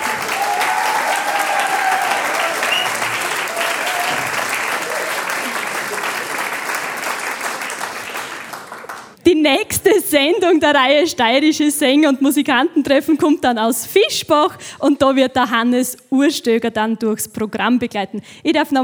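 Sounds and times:
audience applause: 0:00.0 - 0:09.2
speech: 0:09.4 - 0:18.8.

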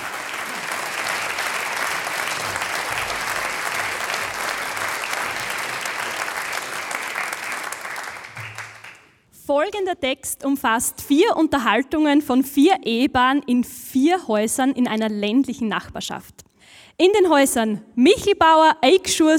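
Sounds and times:
audience applause: 0:00.0 - 0:09.2
speech: 0:09.5 - 0:16.4, 0:17.0 - 0:19.3.

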